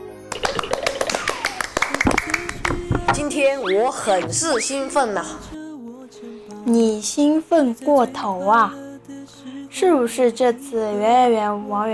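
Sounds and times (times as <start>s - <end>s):
clapping: 0.3s - 3.2s
speech: 3.2s - 5.6s, 6.6s - 8.8s, 9.8s - 11.9s.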